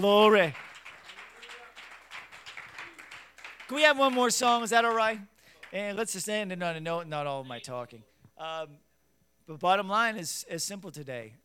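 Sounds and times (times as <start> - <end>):
speech: 0.0 - 0.7, 3.7 - 8.8, 9.5 - 11.4
church worship congregation clapping hands: 0.0 - 6.1.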